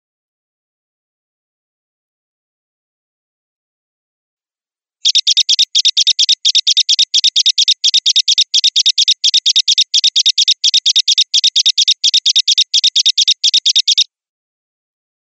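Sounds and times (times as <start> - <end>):
Java sparrow song of short clicking high notes: 5.1 - 14.1.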